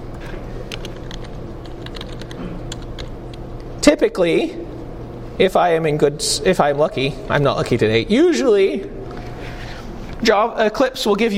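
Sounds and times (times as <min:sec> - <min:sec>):
low steady hum: 0:00.0 - 0:11.3
typing on a computer keyboard while writing code in the Eclipse editor: 0:00.7 - 0:03.4
speech: 0:03.8 - 0:04.6, 0:05.4 - 0:09.0, 0:10.2 - 0:11.3.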